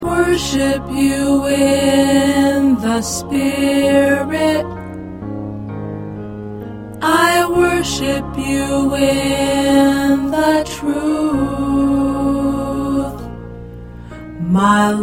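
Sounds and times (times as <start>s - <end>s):
tenor singing: 0.0s - 4.8s, 7.0s - 13.3s.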